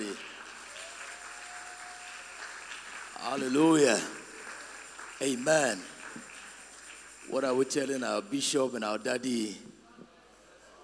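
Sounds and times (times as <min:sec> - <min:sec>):
crowd clapping: 0:00.0 - 0:08.5
speech: 0:03.3 - 0:04.2, 0:05.2 - 0:05.9, 0:07.3 - 0:09.8.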